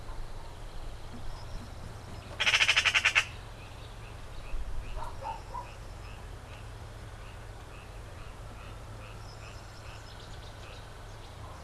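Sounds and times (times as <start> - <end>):
faint soft bird calls: 0.0 - 11.6
Eurasian Magpie rattling chatter: 1.2 - 3.4.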